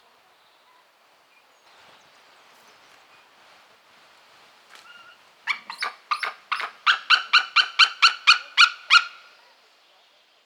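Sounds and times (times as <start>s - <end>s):
white-tailed eagle yelping calls: 4.8s - 9.4s.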